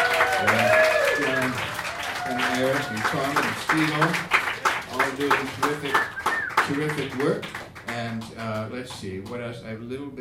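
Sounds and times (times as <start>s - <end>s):
audience applause: 0.0s - 8.2s
speech: 2.8s - 4.3s, 5.2s - 6.1s, 6.7s - 10.1s.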